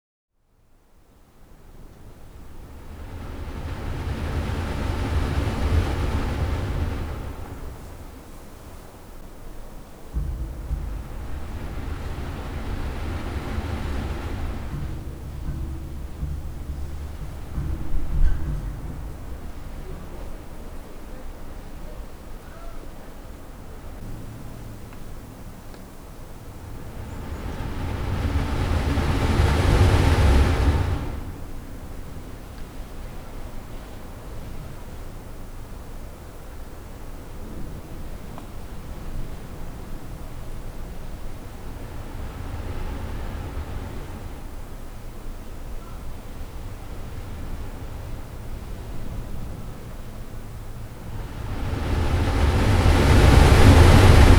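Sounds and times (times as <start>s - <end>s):
sea at Sagres Portugal: 2.0s - 9.2s, 10.1s - 21.8s, 26.4s - 33.2s, 38.7s - 54.3s.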